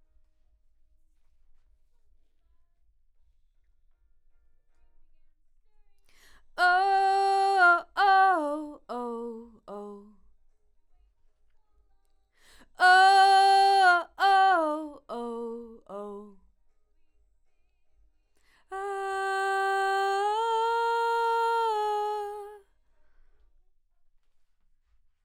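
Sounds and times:
vocal: 0:06.6 - 0:10.1, 0:12.7 - 0:16.3, 0:18.7 - 0:22.6.

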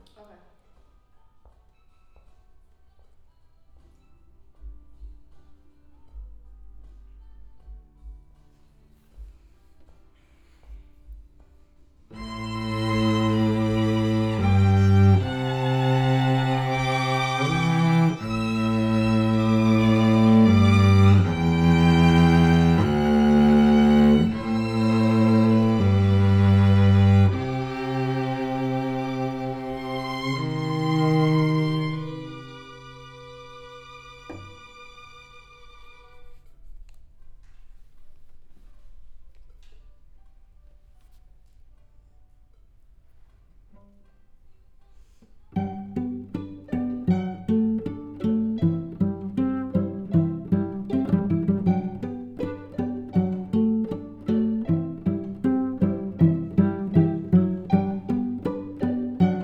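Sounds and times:
cello: 0:12.1 - 0:36.8, 0:44.9 - 0:59.4.

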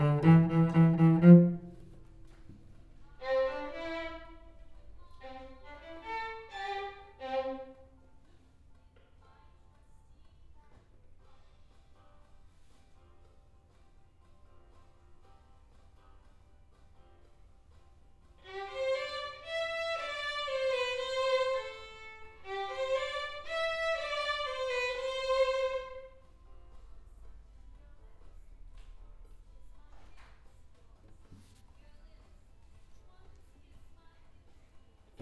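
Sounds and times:
cello: 0:00.0 - 0:08.0, 0:18.4 - 0:26.4.

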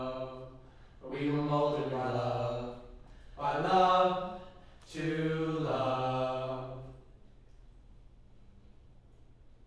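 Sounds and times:
low choir harmony: 0:00.0 - 0:07.3.

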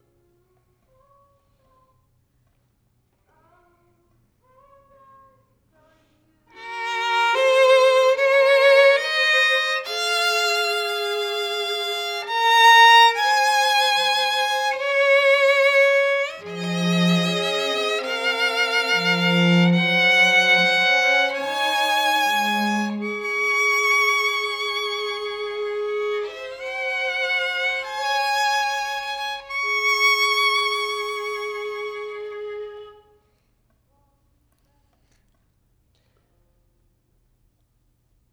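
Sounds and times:
violin: 0:06.5 - 0:33.2.

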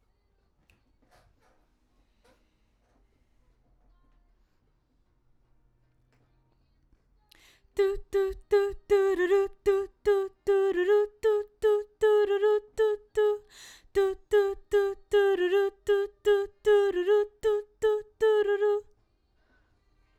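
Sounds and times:
background vocals: 0:07.4 - 0:18.9.

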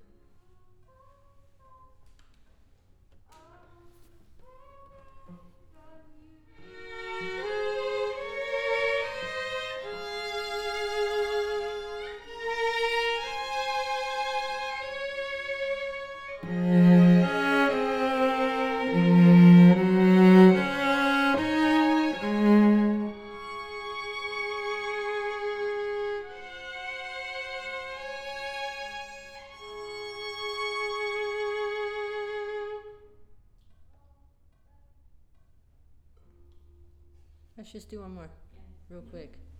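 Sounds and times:
cello: 0:03.3 - 0:33.8.

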